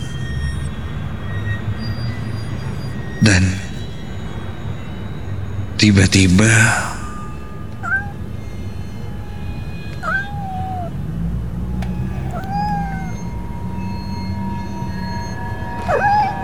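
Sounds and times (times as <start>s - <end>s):
low rumbling background: 0.0s - 16.4s
speech: 3.2s - 3.6s, 5.8s - 6.9s
cat meowing: 6.6s - 14.2s, 15.8s - 16.4s.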